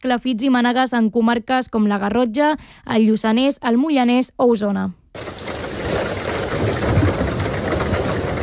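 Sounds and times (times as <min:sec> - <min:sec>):
speech: 0:00.0 - 0:05.4
hail and heavy rain falling in Sant Pau de Segúries: 0:05.2 - 0:08.4.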